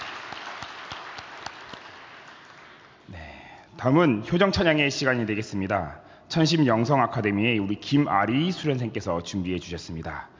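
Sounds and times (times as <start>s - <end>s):
audience applause: 0.0s - 2.9s
speech: 3.8s - 10.3s.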